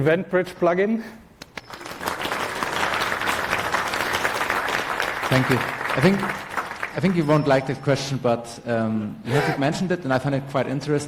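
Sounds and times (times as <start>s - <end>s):
speech: 0.0s - 1.8s, 5.3s - 11.0s
audience applause: 1.6s - 7.5s.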